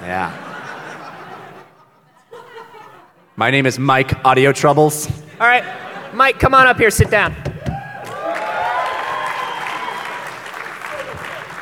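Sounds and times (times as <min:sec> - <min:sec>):
laughter: 0:00.0 - 0:03.4, 0:05.0 - 0:07.3
speech: 0:00.1 - 0:00.4, 0:03.4 - 0:07.5
audience clapping: 0:07.8 - 0:11.5.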